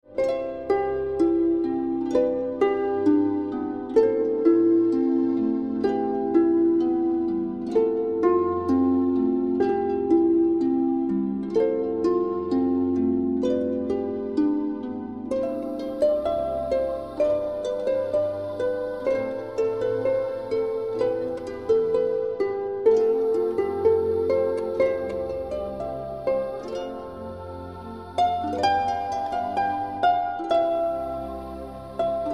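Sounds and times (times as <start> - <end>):
magical harp: 0.0 - 32.3.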